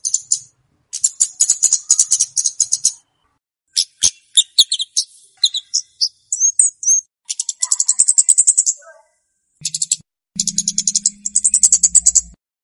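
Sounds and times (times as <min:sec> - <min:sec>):
flowerpecker song of high rapid ticks used as a lure: 0:00.0 - 0:08.8, 0:09.6 - 0:12.4.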